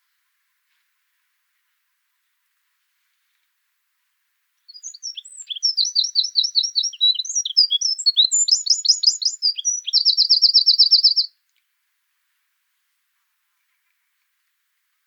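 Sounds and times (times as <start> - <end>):
Eurasian wren trilling: 4.7 - 11.3.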